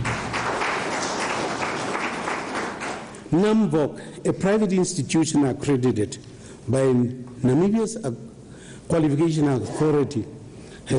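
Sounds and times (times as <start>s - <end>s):
audience applause: 0.0s - 3.2s
speech: 3.3s - 8.3s, 8.9s - 10.9s.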